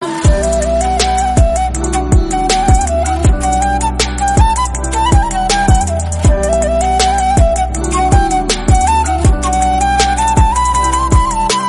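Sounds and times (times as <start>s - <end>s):
flute ringtone: 0.0s - 11.6s.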